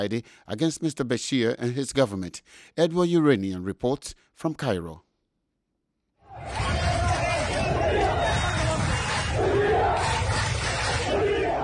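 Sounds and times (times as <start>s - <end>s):
speech: 0.0s - 5.1s
large crowds of demonstrators in the streets of Port Sudan chanting slogans: 6.3s - 11.6s.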